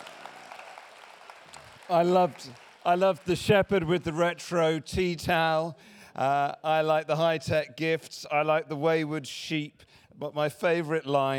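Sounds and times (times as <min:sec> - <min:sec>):
audience applause after a nativity play: 0:00.0 - 0:04.2
speech: 0:01.9 - 0:11.3.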